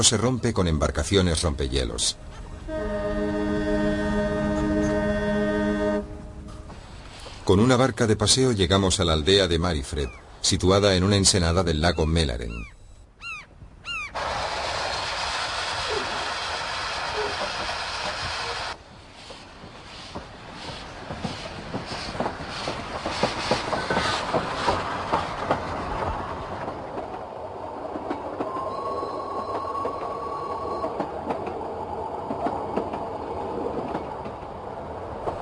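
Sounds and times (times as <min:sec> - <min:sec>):
speech: 0:00.0 - 0:03.0, 0:07.5 - 0:12.8
old steam train running on rails: 0:02.2 - 0:07.5, 0:14.2 - 0:35.4.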